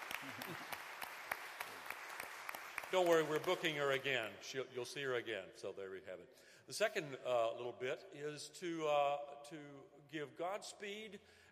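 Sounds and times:
audience applause: 0:00.0 - 0:04.2
speech: 0:00.2 - 0:00.8, 0:02.9 - 0:11.4.

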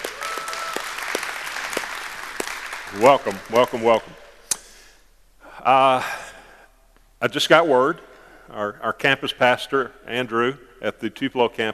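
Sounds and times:
audience applause: 0:00.0 - 0:04.2
speech: 0:02.9 - 0:04.2, 0:05.6 - 0:06.2, 0:07.2 - 0:11.7.

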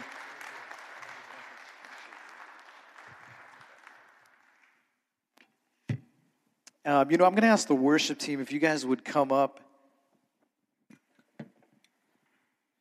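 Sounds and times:
audience applause: 0:00.0 - 0:05.0
speech: 0:06.9 - 0:09.7.

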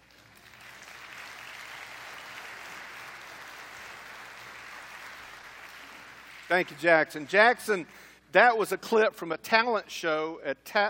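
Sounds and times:
audience applause: 0:00.0 - 0:06.9
speech: 0:06.5 - 0:10.8.

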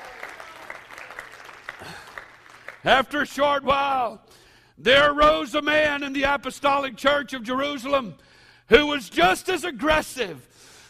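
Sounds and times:
audience clapping hands: 0:00.0 - 0:03.2
speech: 0:01.8 - 0:02.1, 0:02.8 - 0:10.6.

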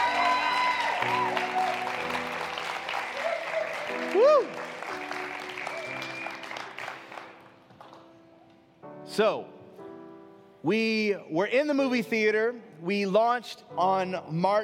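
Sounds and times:
audience applause at a one-year anniversary celebration: 0:00.0 - 0:08.1
speech: 0:09.2 - 0:09.6, 0:10.6 - 0:14.6.

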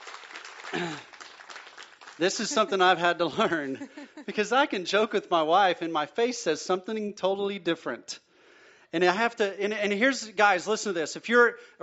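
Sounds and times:
audience applause: 0:00.0 - 0:03.1
speech: 0:00.7 - 0:01.1, 0:02.2 - 0:08.2, 0:08.9 - 0:11.8
laughter: 0:02.2 - 0:04.5
person calling out: 0:02.4 - 0:02.9.

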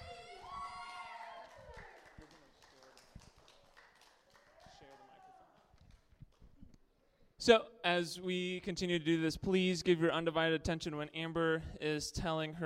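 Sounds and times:
loud whoops and cheering voices: 0:00.0 - 0:02.1, 0:04.5 - 0:05.7
crowd clapping welcoming speaker to stage: 0:00.0 - 0:06.6
speech: 0:07.4 - 0:12.6.

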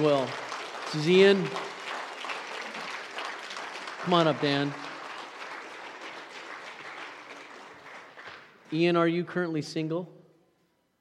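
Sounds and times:
speech: 0:00.0 - 0:01.7, 0:04.0 - 0:04.8, 0:08.7 - 0:10.2
church congregation applause welcoming a speaker: 0:00.0 - 0:08.8.

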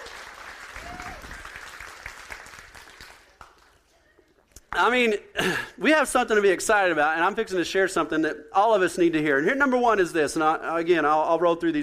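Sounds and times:
audience clapping: 0:00.0 - 0:03.9
speech: 0:04.8 - 0:11.8.

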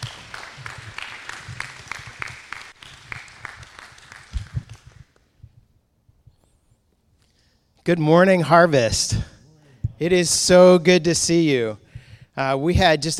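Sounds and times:
audience applause: 0:00.0 - 0:05.0
speech: 0:07.9 - 0:09.3, 0:10.0 - 0:11.8, 0:12.4 - 0:13.1.

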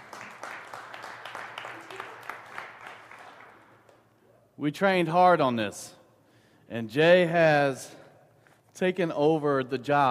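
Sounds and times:
audience clapping: 0:00.0 - 0:04.1
speech: 0:04.6 - 0:06.0, 0:06.7 - 0:08.0, 0:08.8 - 0:10.0.

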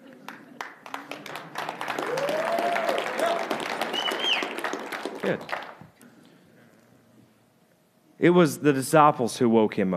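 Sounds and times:
audience applause: 0:00.3 - 0:05.8
people whooping: 0:02.0 - 0:04.6
speech: 0:05.2 - 0:05.6, 0:08.2 - 0:09.9.

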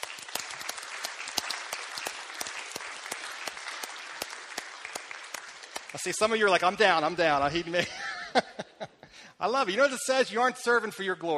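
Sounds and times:
audience applause: 0:00.0 - 0:07.4
speech: 0:05.9 - 0:08.7, 0:09.4 - 0:11.3
laughter: 0:07.6 - 0:09.2.

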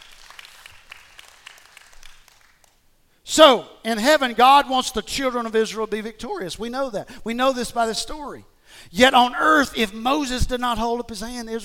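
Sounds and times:
audience hand clapping: 0:00.0 - 0:02.9
speech: 0:03.4 - 0:11.6.

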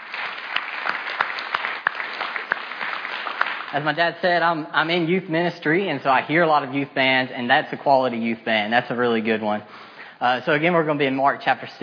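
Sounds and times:
round of applause for youth band: 0:00.0 - 0:04.2
speech: 0:03.7 - 0:11.8.

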